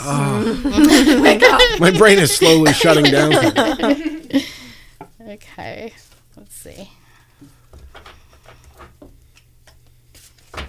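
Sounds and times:
speech: 0.0s - 4.6s, 5.3s - 8.1s
laughter: 0.1s - 4.7s
tarot cards being shuffled: 9.3s - 10.6s.

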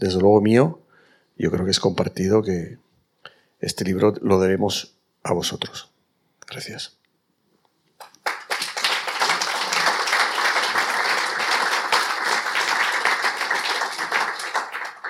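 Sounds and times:
speech: 0.0s - 0.8s, 1.4s - 2.8s, 3.6s - 5.9s, 6.5s - 7.0s
audience applause: 8.0s - 15.0s.

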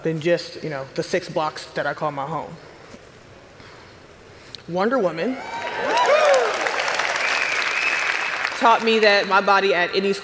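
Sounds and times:
speech: 0.0s - 2.7s, 4.7s - 6.5s, 8.6s - 10.2s
crowd whooping and cheering: 5.4s - 8.6s
audience applause: 5.5s - 9.0s.

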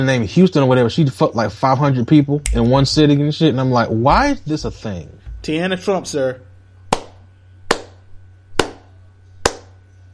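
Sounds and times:
speech: 0.0s - 6.5s
low steady hum: 0.0s - 10.1s
hand claps: 6.9s - 9.8s.

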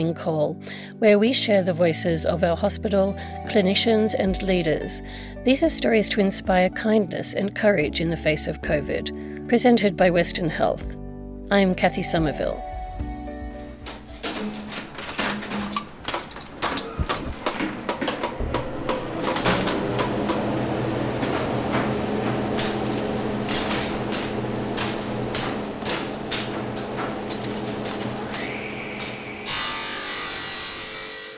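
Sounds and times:
speech: 0.0s - 12.7s
hospital basement engine room machinery humming: 13.3s - 31.3s
hospital basement engine room machinery knocking and clicking: 13.9s - 29.3s.

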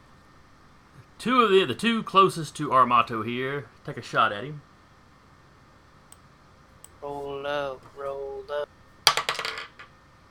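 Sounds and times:
speech: 1.2s - 4.7s
dice rolled on a table during a tabletop role-playing session: 9.1s - 9.9s.

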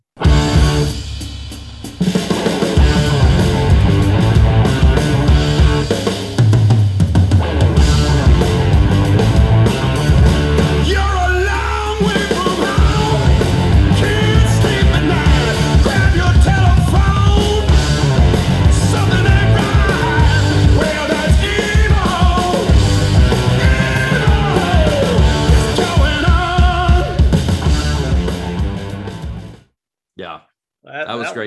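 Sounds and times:
blues rock cover song: 0.2s - 29.6s
gritty wailing lead vocal: 10.7s - 27.2s.

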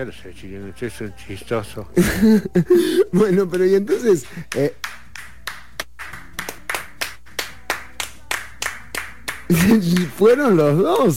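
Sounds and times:
speech: 0.0s - 4.8s, 9.5s - 11.1s
laughter: 2.0s - 4.2s, 9.5s - 10.1s
audience clapping: 3.5s - 11.1s.

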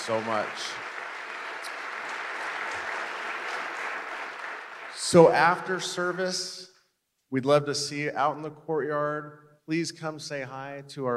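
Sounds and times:
speech: 0.0s - 0.8s, 5.0s - 6.7s, 7.3s - 11.1s
audience applause: 0.0s - 5.8s.

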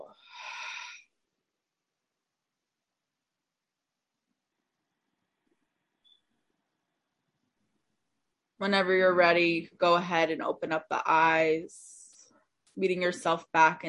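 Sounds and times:
deep breath in through the nose and out through the mouth: 0.1s - 1.1s
speech: 8.6s - 12.0s, 12.8s - 13.8s.

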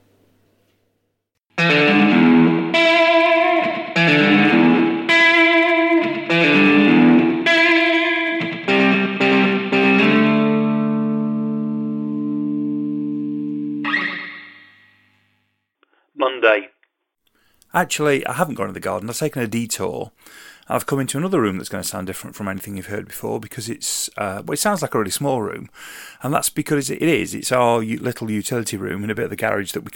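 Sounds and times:
twangy electric guitar with chorus and echo effects: 1.6s - 15.0s
speech: 17.8s - 29.9s.

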